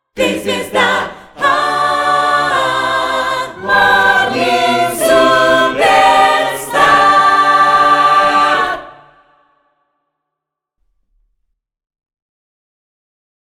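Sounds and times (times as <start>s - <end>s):
choirs singing: 0.1s - 9.6s.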